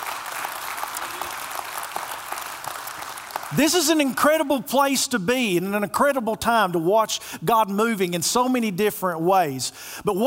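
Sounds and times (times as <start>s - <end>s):
audience applauding: 0.0s - 4.4s
speech: 3.5s - 10.2s.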